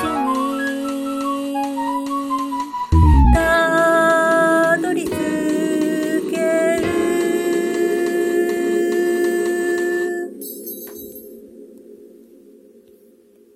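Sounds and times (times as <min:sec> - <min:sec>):
song with vocals: 0:00.0 - 0:10.4.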